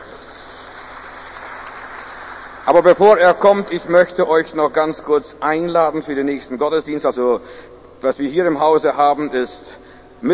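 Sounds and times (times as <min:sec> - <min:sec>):
audience applause at a church service: 0:00.0 - 0:02.8
speech: 0:02.7 - 0:10.3.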